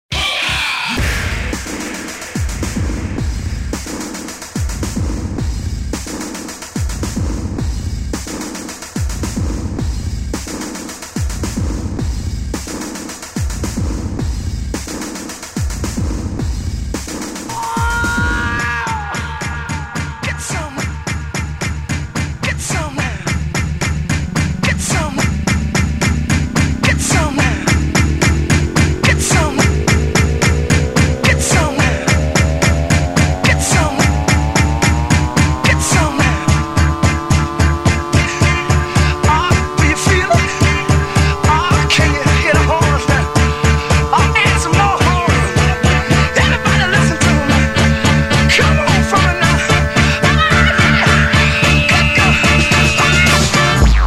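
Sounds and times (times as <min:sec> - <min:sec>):
trap remix: 0:00.1 - 0:54.0
laughter: 0:17.5 - 0:20.9, 0:39.3 - 0:53.2.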